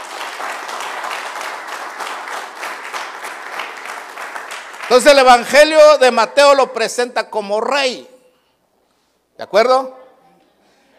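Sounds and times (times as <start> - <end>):
audience clapping: 0.0 - 6.1
speech: 4.9 - 8.1, 9.4 - 10.0.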